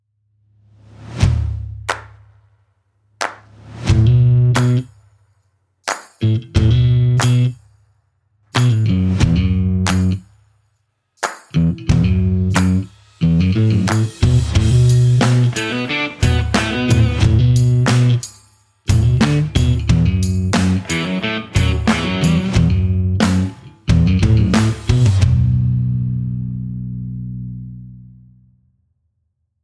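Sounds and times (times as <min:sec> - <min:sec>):
confident cool bass line: 0:03.9 - 0:04.9, 0:06.2 - 0:07.6, 0:08.6 - 0:10.2, 0:11.6 - 0:18.2, 0:18.9 - 0:28.4.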